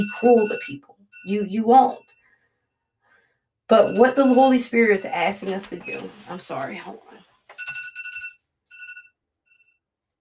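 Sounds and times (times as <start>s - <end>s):
speech: 0.0s - 2.2s, 3.7s - 7.3s
phone alarm ringing: 0.0s - 2.8s, 3.7s - 4.6s, 7.5s - 9.9s.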